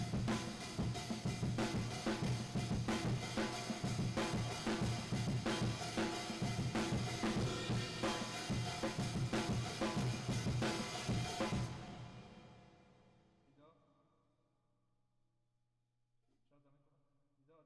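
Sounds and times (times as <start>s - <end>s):
drums with reverb: 0.0s - 12.8s.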